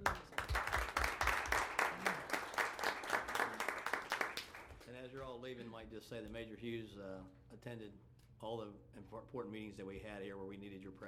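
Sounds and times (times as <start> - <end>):
crowd applause: 0.0 - 4.8
speech: 5.5 - 11.0.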